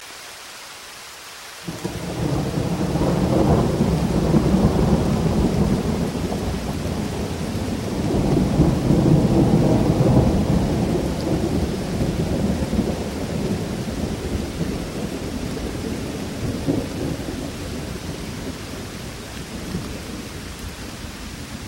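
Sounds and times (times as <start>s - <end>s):
thunder: 1.7s - 18.5s.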